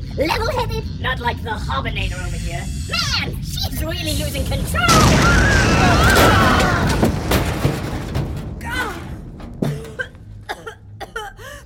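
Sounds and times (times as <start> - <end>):
speech: 0.2 - 6.4
rigged door exploding: 3.8 - 10.5.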